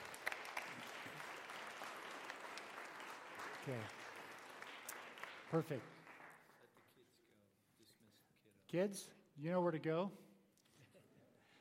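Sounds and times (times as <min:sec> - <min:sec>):
audience applauding: 0:00.0 - 0:07.0
speech: 0:03.6 - 0:04.0, 0:05.5 - 0:06.0, 0:08.7 - 0:10.3.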